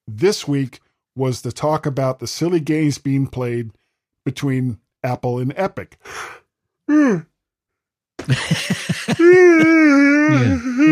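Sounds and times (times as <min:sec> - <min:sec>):
speech: 0:00.2 - 0:07.3, 0:08.2 - 0:10.8
yawn: 0:06.9 - 0:07.3, 0:09.2 - 0:10.8
laughter: 0:08.2 - 0:10.8.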